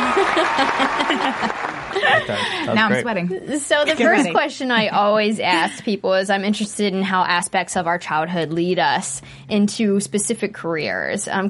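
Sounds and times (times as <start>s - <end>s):
clapping: 0.0s - 2.3s
voices laughing and whooping: 0.0s - 2.5s
speech: 0.4s - 11.4s.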